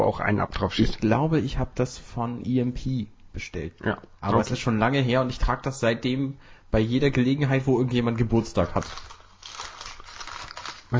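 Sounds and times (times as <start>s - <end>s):
speech: 0.0s - 9.7s
candy wrapper crinkling into the microphone: 8.3s - 10.9s.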